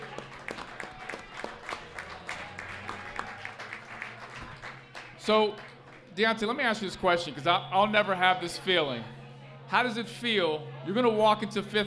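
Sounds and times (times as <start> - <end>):
round of applause: 0.0 - 6.1
speech: 5.3 - 11.8.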